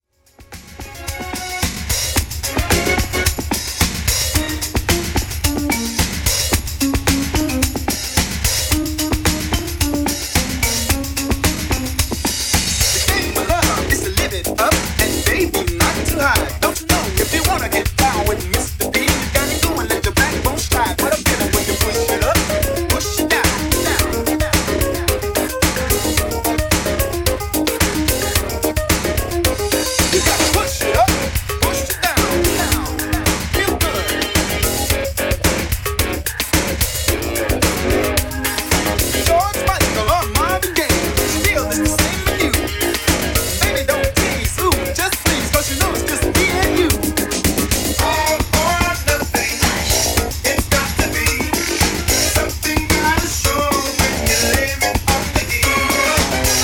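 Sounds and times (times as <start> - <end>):
classic music mix: 0.0 - 56.6.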